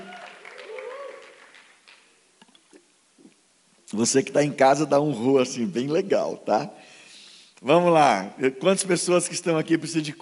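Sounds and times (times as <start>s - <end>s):
crowd clapping: 0.0s - 2.2s
speech: 3.9s - 6.9s, 7.6s - 10.1s.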